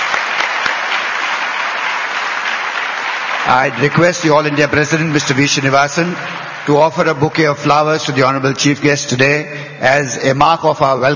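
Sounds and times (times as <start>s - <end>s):
audience applause: 0.0s - 7.6s
speech: 3.4s - 11.1s.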